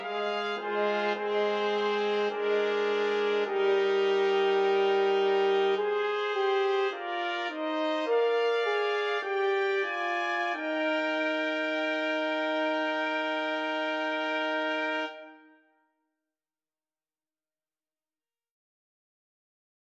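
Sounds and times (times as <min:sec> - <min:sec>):
two trumpets in a brass trio: 0:00.0 - 0:15.6
horn in a brass trio: 0:00.0 - 0:15.8.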